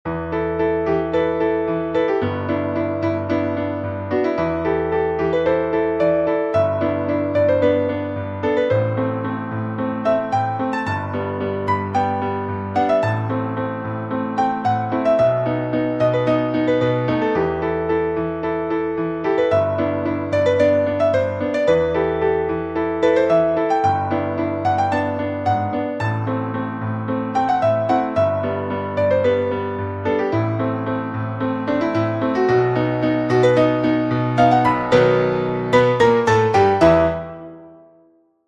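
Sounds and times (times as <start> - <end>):
piano arrangement: 0.0 - 38.4.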